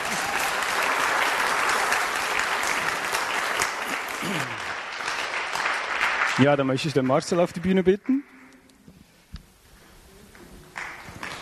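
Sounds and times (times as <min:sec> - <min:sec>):
audience applause: 0:00.0 - 0:08.2, 0:10.3 - 0:11.4
speech: 0:06.4 - 0:08.2.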